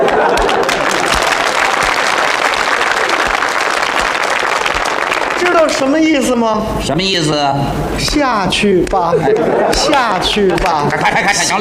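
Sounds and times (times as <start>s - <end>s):
laughter: 0.0s - 1.8s, 8.6s - 11.5s
audience clapping: 0.0s - 6.4s, 8.0s - 11.5s
speech: 5.8s - 11.5s.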